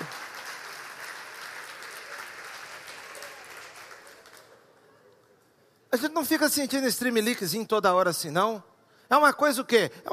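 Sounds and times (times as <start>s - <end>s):
audience applauding: 0.0s - 5.1s
speech: 6.0s - 10.1s.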